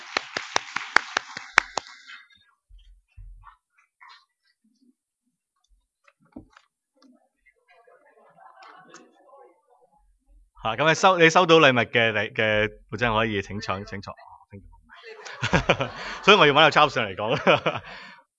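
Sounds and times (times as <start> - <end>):
audience applauding: 0.0 - 2.3, 15.3 - 17.0
laughter: 8.0 - 9.5, 12.3 - 14.1, 15.0 - 18.3
speech: 10.6 - 14.7, 15.3 - 18.1.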